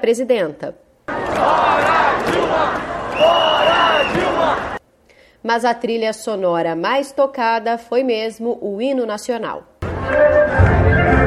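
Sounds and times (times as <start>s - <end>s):
speech: 0.0s - 4.7s, 5.4s - 10.9s
protest crowd shouting slogans: 1.1s - 4.8s.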